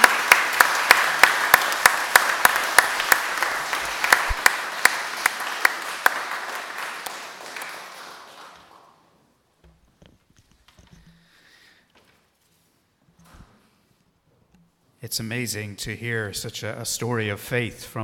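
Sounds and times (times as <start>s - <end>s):
audience applause: 0.0s - 9.2s
speech: 15.1s - 18.0s.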